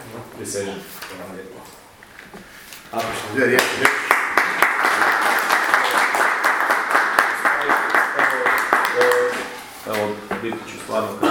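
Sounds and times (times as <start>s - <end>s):
speech: 0.1s - 4.2s, 9.9s - 11.2s
audience applause at mayor oath-taking ceremony in Kolan, Croatia: 3.6s - 9.4s.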